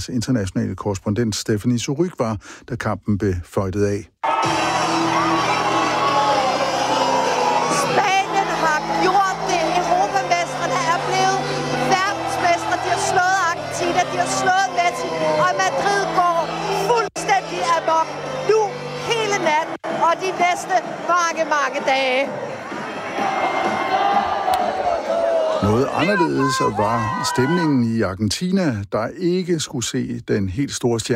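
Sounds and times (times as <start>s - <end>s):
speech: 0.0s - 4.7s, 19.4s - 22.5s, 23.2s - 24.1s, 24.8s - 31.1s
crowd cheering and shouting celebrating World Cup win in Madrid: 4.2s - 27.8s.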